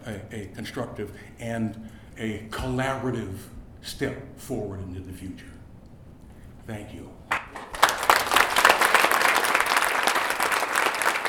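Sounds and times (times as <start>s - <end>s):
speech: 0.0s - 5.6s, 6.7s - 7.2s
crowd applause after a speech: 7.3s - 11.2s.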